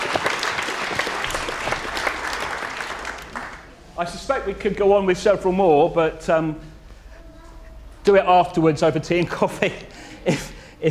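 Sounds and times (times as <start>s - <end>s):
applause: 0.0s - 3.7s
speech: 4.0s - 6.7s, 8.0s - 10.9s.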